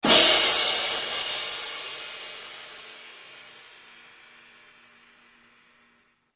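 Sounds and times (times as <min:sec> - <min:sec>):
cymbals: 0:00.0 - 0:06.1.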